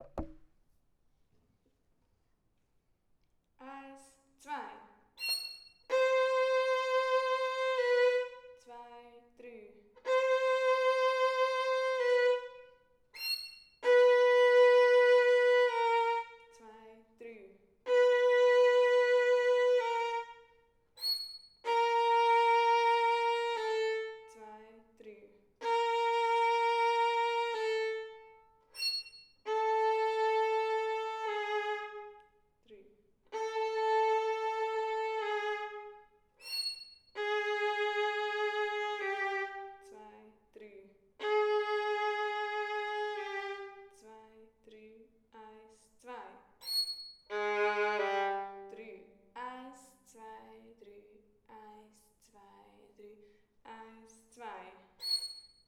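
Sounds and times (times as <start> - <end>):
violin: 0.0 - 0.4, 5.2 - 8.6, 10.0 - 16.9, 17.8 - 24.6, 25.6 - 32.3, 33.3 - 40.0, 41.2 - 44.2, 46.6 - 48.9, 55.0 - 55.6.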